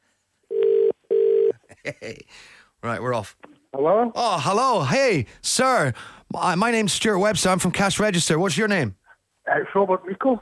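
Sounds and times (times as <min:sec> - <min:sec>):
telephone ringing on an outgoing call: 0:00.5 - 0:01.5
speech: 0:01.8 - 0:10.4.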